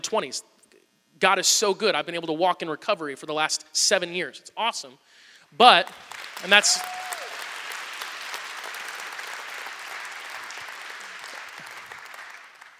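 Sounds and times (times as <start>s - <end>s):
speech: 0.1s - 0.6s, 1.2s - 7.0s
audience clapping: 5.8s - 12.7s.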